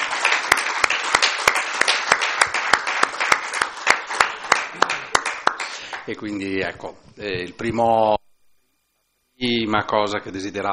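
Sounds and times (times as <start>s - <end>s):
audience applause: 0.0s - 6.1s
speech: 6.1s - 8.2s, 9.4s - 10.7s.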